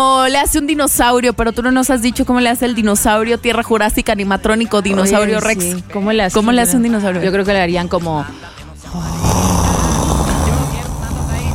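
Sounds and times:
speech: 0:00.0 - 0:09.2
person imitating snoring: 0:08.8 - 0:11.5.

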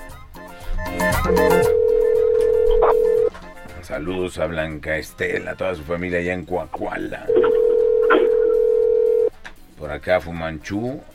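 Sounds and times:
telephone line ringing tone: 0:01.2 - 0:03.3, 0:07.3 - 0:09.3
speech: 0:03.9 - 0:07.6, 0:09.8 - 0:11.1.

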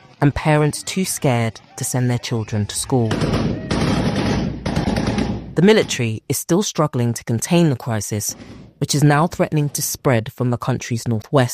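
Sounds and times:
speech: 0:00.2 - 0:03.6, 0:05.6 - 0:11.5
gunfire bursts: 0:03.1 - 0:06.0.

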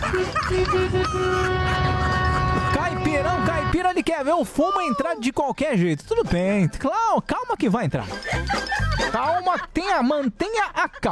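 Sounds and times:
laughter: 0:00.0 - 0:03.0, 0:07.9 - 0:11.0
car horns honking in protest: 0:00.0 - 0:04.5
speech: 0:00.2 - 0:01.9, 0:03.0 - 0:11.0.

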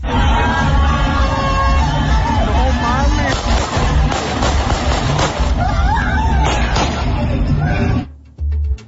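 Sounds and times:
crowd: 0:00.0 - 0:08.1
gunshots fired into the air by municipal police: 0:03.2 - 0:05.6.

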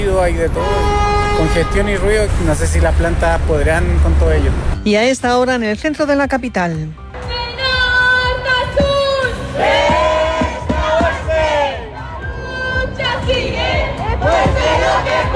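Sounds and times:
speech: 0:00.2 - 0:07.0
crowd at a pro-Palestine demonstration in the city centre chanting slogans: 0:07.2 - 0:15.3.

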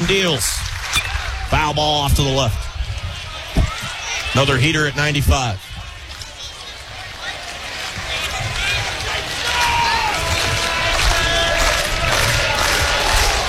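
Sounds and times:
baseball stadium crowd cheering: 0:00.0 - 0:13.4
speech: 0:00.1 - 0:00.6, 0:01.5 - 0:02.6, 0:04.4 - 0:05.7.

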